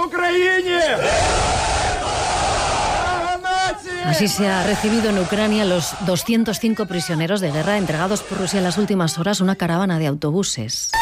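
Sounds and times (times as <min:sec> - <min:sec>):
crowd cheering returning prisoners of war: 0:00.0 - 0:09.6
speech: 0:04.0 - 0:11.0.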